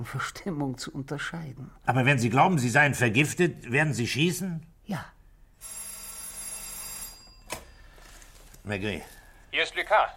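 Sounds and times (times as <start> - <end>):
speech: 0.0 - 5.8, 8.7 - 10.1
old telephone bell ringing in a metallic trill: 5.6 - 8.2.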